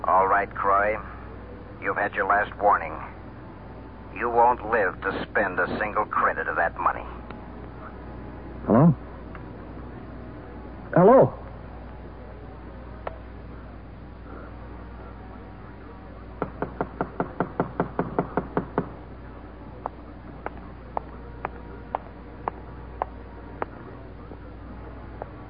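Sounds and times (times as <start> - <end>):
low steady hum: 0.0 - 25.4
speech: 0.2 - 1.2, 1.8 - 3.2, 4.2 - 7.2, 8.7 - 9.0, 10.9 - 11.4
knocking on a door: 16.4 - 19.0.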